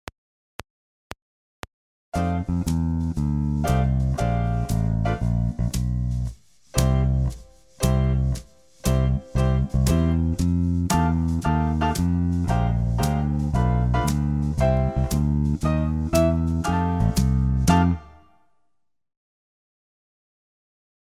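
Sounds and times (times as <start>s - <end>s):
jazz music: 2.2s - 18.2s.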